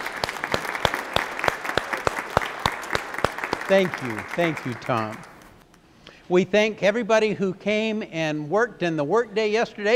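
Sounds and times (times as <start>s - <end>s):
audience round of applause: 0.0s - 5.5s
speech: 3.7s - 5.3s, 6.3s - 9.9s.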